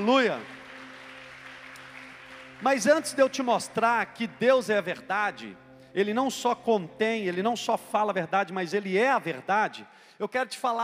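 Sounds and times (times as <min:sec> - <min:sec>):
speech: 0:00.0 - 0:00.6, 0:02.6 - 0:10.8
applause: 0:00.0 - 0:04.7.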